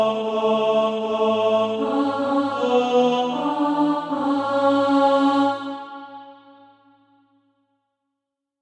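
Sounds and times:
tenor singing: 0:00.0 - 0:06.2.

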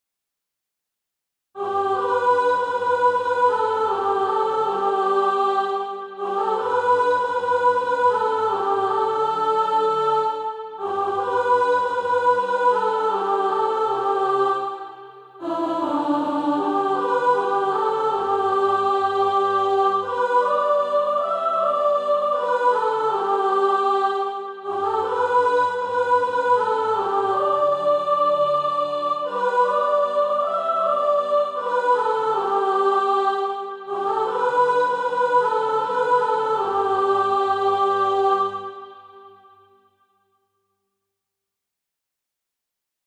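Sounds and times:
soprano singing practice music: 0:01.6 - 0:39.3.

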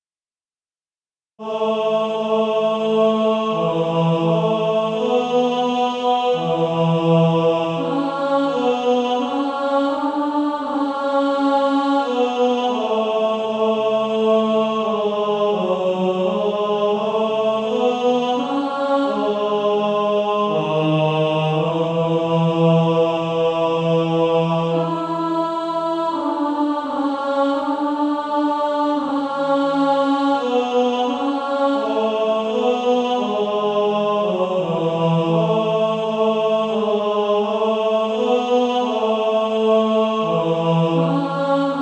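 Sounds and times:
male choir singing, second tenor part: 0:01.4 - 0:41.8.

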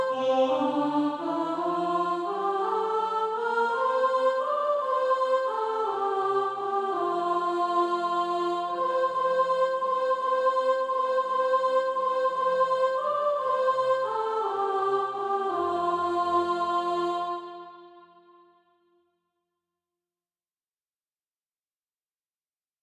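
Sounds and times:
soprano singing SATB practice music: 0:00.0 - 0:17.7.

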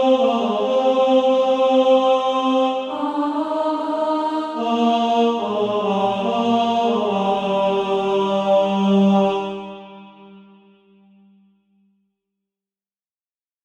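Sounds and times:
tenor singing: 0:00.0 - 0:10.0.

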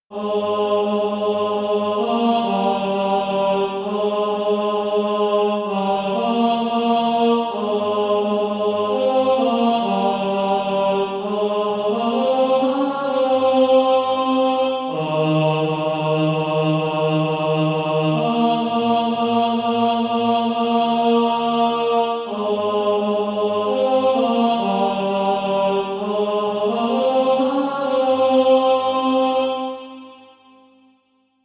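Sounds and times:
tenor SATB practice part: 0:00.1 - 0:30.2.

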